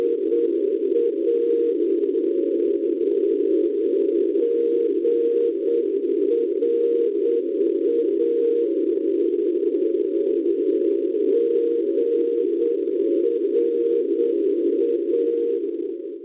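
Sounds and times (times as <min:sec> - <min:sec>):
NDB radio beacon signal on 343 kHz: 0:00.0 - 0:02.6, 0:03.4 - 0:16.1.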